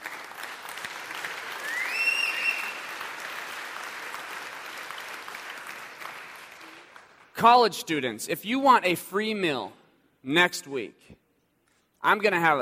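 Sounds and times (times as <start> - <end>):
church congregation applauding college students at a Sunday service: 0.0 - 7.7
speech: 7.4 - 11.2, 12.0 - 12.5.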